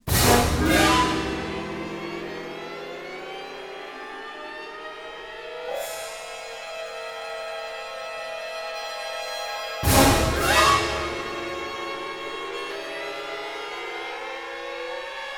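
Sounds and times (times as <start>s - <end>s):
orchestral string accent: 0.0s - 6.2s, 9.8s - 15.0s.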